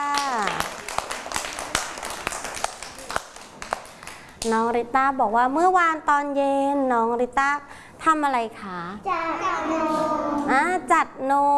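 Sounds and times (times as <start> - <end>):
hand clapping: 0.0 - 4.6
speech: 4.4 - 11.5.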